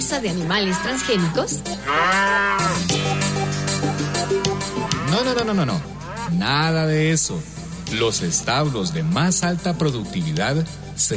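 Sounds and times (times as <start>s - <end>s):
speech: 0.1s - 3.2s, 5.2s - 11.1s
cow mooing: 0.2s - 6.8s.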